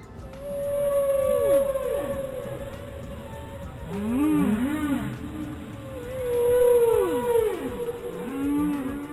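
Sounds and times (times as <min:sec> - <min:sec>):
whale calls, long wavering moans: 0:00.3 - 0:09.1.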